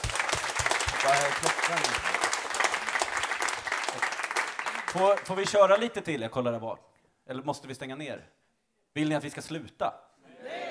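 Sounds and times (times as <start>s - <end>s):
audience applause: 0.0s - 5.5s
speech: 1.3s - 2.1s, 4.9s - 8.4s, 9.0s - 10.1s.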